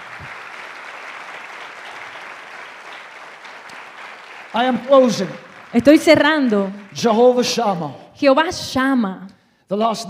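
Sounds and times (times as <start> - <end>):
congregation clapping in praise during a church sermon: 0.0 - 8.1
speech: 4.5 - 10.0.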